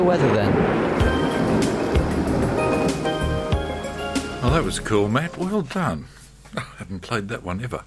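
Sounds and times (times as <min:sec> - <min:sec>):
speech: 0:00.0 - 0:00.8, 0:04.5 - 0:07.8
rain falling outside: 0:00.0 - 0:05.6.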